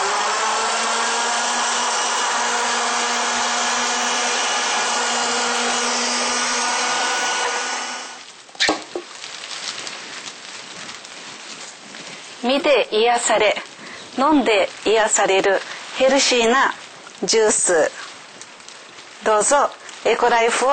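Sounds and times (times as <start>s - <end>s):
blender whirring: 0.0s - 8.2s
speech: 12.5s - 18.0s, 19.2s - 20.7s.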